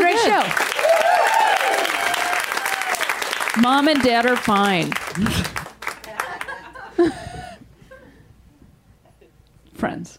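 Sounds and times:
crowd applauding: 0:00.0 - 0:06.9
speech: 0:03.6 - 0:05.6, 0:07.0 - 0:07.2, 0:09.8 - 0:10.1
laughter: 0:05.1 - 0:08.3.

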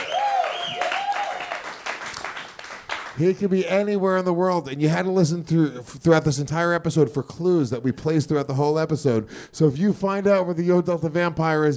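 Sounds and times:
applause: 0:00.0 - 0:03.4
speech: 0:03.2 - 0:11.7.

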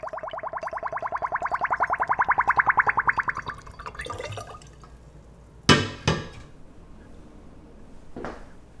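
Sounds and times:
homemade plum wine draining through a funnel into a bottle: 0:00.0 - 0:04.9.

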